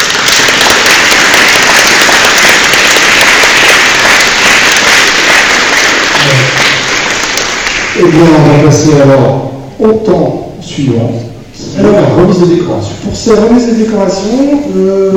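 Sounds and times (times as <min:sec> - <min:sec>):
audience applause: 0:00.0 - 0:08.4
speech: 0:08.0 - 0:11.2, 0:11.8 - 0:15.1.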